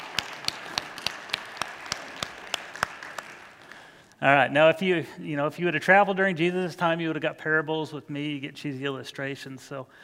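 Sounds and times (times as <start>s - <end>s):
crowd applause: 0.0s - 4.1s
sharp rhythmic claps: 0.0s - 4.2s
speech: 4.2s - 10.0s.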